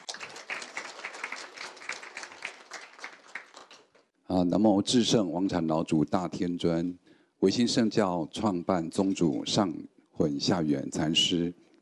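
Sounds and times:
warm applause from audience: 0.0 - 4.1
speech: 4.3 - 11.6.

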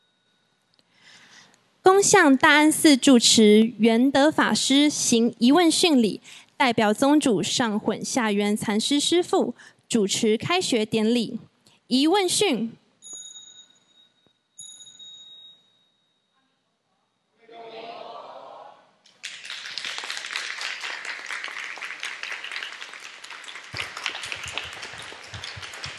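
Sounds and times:
speech: 1.9 - 12.8
audience applause: 19.2 - 25.9.

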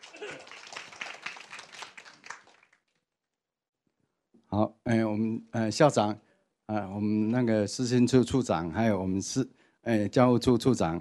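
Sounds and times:
audience applauding: 0.0 - 3.0
speech: 4.6 - 10.9.

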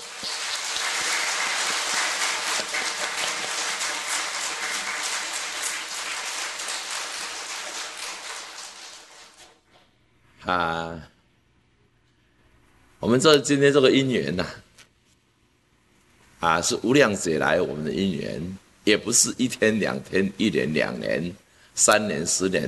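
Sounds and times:
crowd applause: 0.0 - 9.6
speech: 10.4 - 11.1, 13.0 - 14.6, 16.4 - 22.6.

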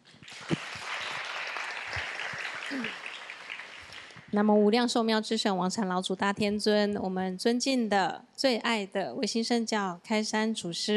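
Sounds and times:
audience applause: 0.2 - 4.4
speech: 2.7 - 3.0, 4.3 - 10.9.

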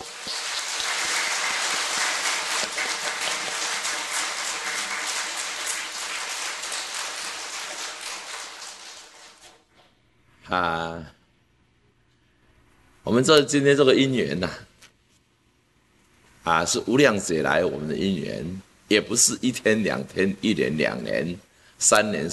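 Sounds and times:
audience applause: 0.0 - 9.6
speech: 10.5 - 11.2, 13.0 - 14.7, 16.5 - 22.3.

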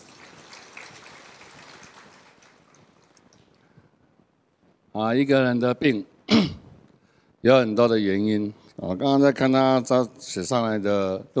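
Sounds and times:
crowd applauding: 0.0 - 3.4
speech: 5.0 - 6.6, 7.4 - 11.3.

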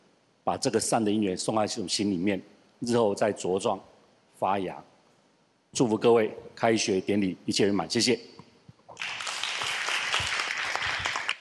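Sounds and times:
speech: 0.5 - 4.9, 5.7 - 8.4
audience applause: 9.0 - 11.3.

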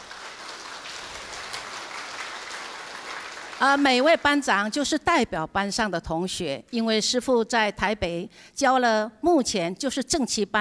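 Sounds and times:
audience applause: 0.0 - 4.2
speech: 3.6 - 10.5.

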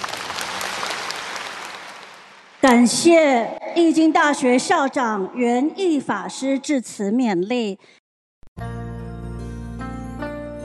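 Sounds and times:
audience applause at a ceremony conferring ranks: 0.0 - 2.6
speech: 2.8 - 8.0.

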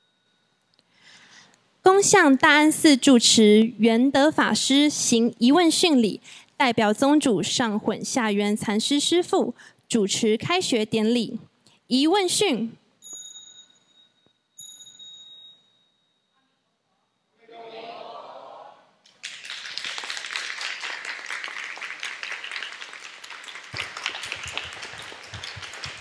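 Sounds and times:
faint ringing tones: 0.0 - 1.2, 13.0 - 17.3
speech: 1.9 - 12.8
audience clapping at a school opening ceremony at Da'an Temple: 19.1 - 25.9.

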